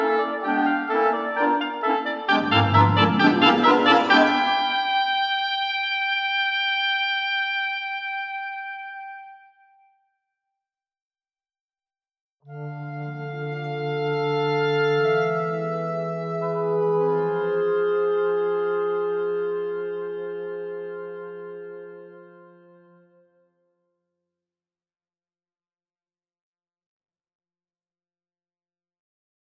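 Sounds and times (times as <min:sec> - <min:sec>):
romantic woodwind music: 0:00.0 - 0:09.6, 0:12.5 - 0:23.5.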